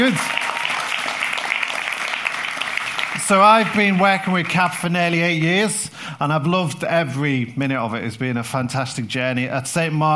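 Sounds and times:
speech: 0.0s - 0.4s, 3.3s - 10.1s
crowd applauding: 0.0s - 5.4s.

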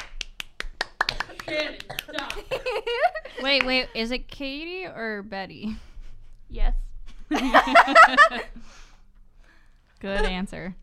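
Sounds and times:
people clapping hands: 0.0s - 3.9s
laughter: 1.2s - 4.0s, 7.3s - 8.5s
speech: 1.5s - 5.9s, 6.5s - 8.9s, 10.0s - 10.8s.

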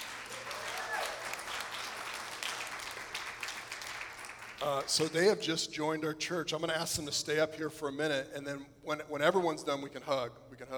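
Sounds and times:
audience clapping: 0.0s - 5.1s
speech: 4.6s - 10.7s.

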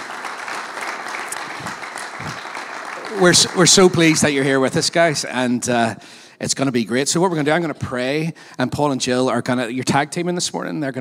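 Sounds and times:
audience at a church gathering applauding to welcome guest speakers: 0.0s - 5.2s
speech: 3.1s - 10.9s.

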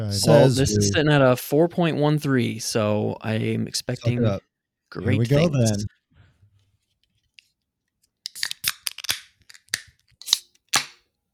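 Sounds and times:
speech: 0.0s - 6.0s
beer can being opened: 8.3s - 11.0s.

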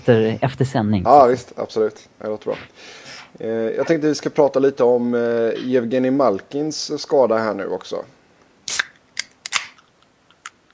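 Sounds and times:
speech: 0.0s - 8.2s
soda can being cracked open: 8.7s - 9.8s.

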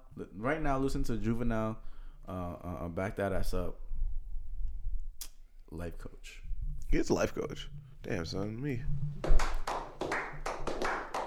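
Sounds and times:
speech: 0.2s - 3.9s, 5.7s - 9.4s
hand claps: 9.2s - 11.2s.

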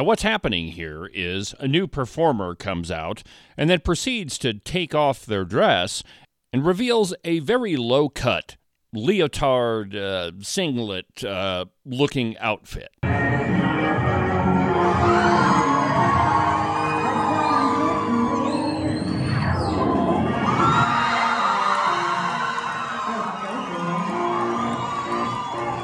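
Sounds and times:
speech: 0.0s - 13.6s
large crowd cheering and screaming at a show: 13.5s - 25.8s.

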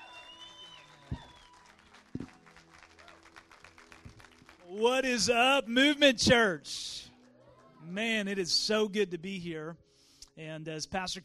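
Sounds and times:
audience applause: 0.0s - 5.6s
speech: 4.8s - 6.9s, 7.9s - 9.8s, 10.4s - 11.2s.

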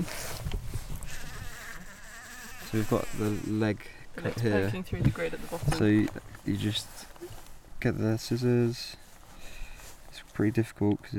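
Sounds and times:
bee buzzing inside a small pot: 1.0s - 3.7s
speech: 2.7s - 7.1s, 7.8s - 9.0s, 10.4s - 11.1s.

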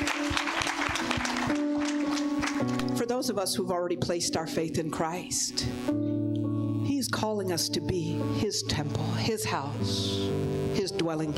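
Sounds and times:
congregation applauding to welcome new church members: 0.0s - 3.0s
held musical tone: 0.0s - 3.1s
speech: 3.2s - 6.4s, 7.0s - 11.3s.

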